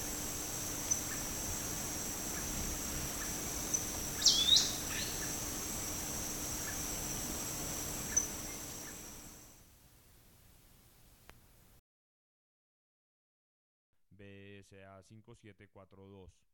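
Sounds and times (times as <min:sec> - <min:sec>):
forest elaenia: 0:00.0 - 0:09.1.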